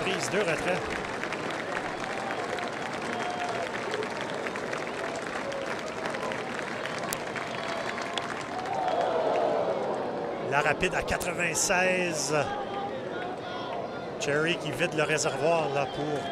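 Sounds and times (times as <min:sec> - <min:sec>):
baseball stadium crowd applauding: 0:00.0 - 0:16.2
speech: 0:00.2 - 0:01.2, 0:10.6 - 0:12.7, 0:14.3 - 0:16.2
high whistles and cheers: 0:01.7 - 0:10.0.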